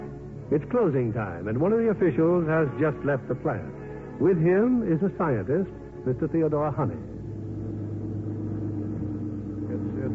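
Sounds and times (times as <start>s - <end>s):
speech: 0.5s - 7.1s
car driven home from an aircraft plant at Farnborough, radio-drama effect: 6.2s - 10.1s.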